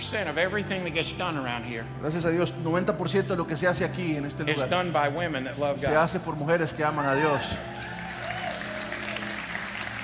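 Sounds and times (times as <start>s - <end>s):
speech: 0.1s - 7.9s
women in an audience applauding: 7.4s - 10.0s.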